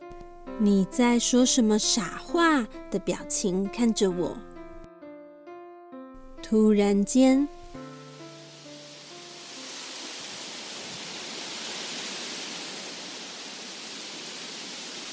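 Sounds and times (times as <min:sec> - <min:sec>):
speech: 0:00.6 - 0:04.5, 0:06.5 - 0:07.6
wind blowing through trees: 0:07.5 - 0:15.1.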